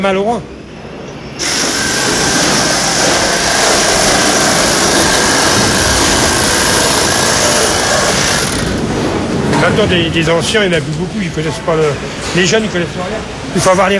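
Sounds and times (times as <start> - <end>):
speech: 0.0 - 0.6, 9.7 - 13.9
saw: 1.4 - 8.9.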